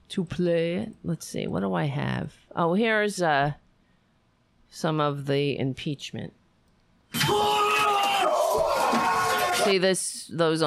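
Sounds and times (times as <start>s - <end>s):
speech: 0.1s - 3.6s, 4.7s - 6.4s, 7.1s - 7.6s, 9.6s - 10.6s
rioting crowd yelling: 7.2s - 9.8s.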